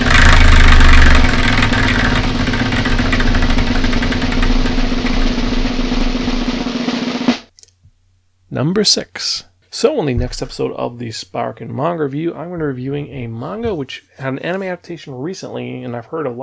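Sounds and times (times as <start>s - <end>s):
Wheel of Manga prize wheel spinning with rapid clicks: 0.0s - 6.6s
speech: 8.6s - 16.4s.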